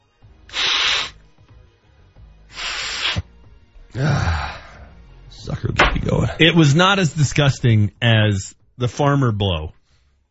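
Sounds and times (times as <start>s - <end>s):
nasal spray pump hissing into nose: 0.5s - 1.2s, 2.5s - 3.3s
speech: 4.0s - 4.5s, 5.6s - 9.8s.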